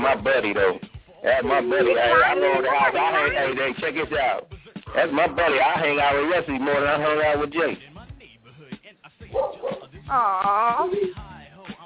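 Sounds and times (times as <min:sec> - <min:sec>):
speech: 0:00.0 - 0:07.9, 0:10.1 - 0:11.2
dog barking: 0:09.3 - 0:09.9.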